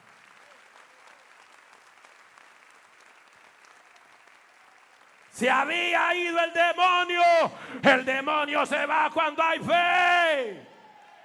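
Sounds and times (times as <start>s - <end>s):
audience applause: 0.0s - 6.1s, 10.6s - 11.2s
speech: 5.4s - 10.7s.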